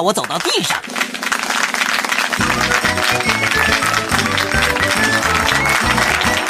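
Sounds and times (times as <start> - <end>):
speech: 0.0 - 1.2
audience clapping hands: 0.0 - 6.4.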